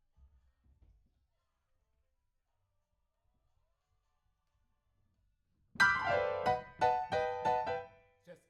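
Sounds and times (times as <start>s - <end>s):
rock and roll piano: 5.8s - 7.9s.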